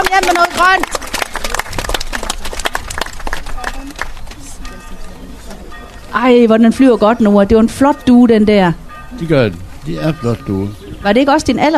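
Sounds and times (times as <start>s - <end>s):
group clapping: 0.0s - 4.7s
speech: 0.1s - 1.0s, 4.9s - 11.7s.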